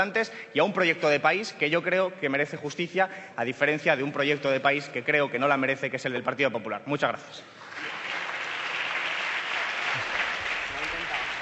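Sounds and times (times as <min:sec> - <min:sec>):
speech: 0:00.0 - 0:07.7
deputies applauding in parliament: 0:07.6 - 0:11.4.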